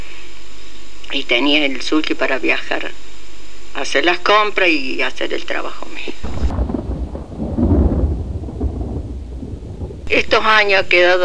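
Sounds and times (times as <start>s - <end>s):
speech: 1.1s - 3.1s, 3.8s - 6.3s, 10.1s - 11.2s
rain falling: 5.8s - 11.2s
thunder: 6.2s - 10.1s.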